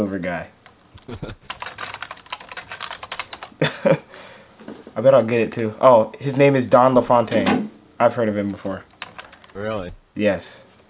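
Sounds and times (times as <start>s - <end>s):
speech: 0.0s - 1.6s, 3.6s - 4.1s, 5.0s - 8.9s, 9.6s - 10.6s
search being typed on a computer keyboard: 0.6s - 3.6s, 8.9s - 9.6s.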